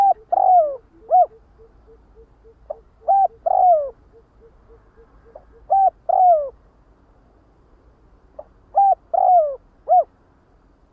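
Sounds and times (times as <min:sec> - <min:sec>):
spotted dove cooing: 0:00.0 - 0:06.6, 0:08.4 - 0:10.1.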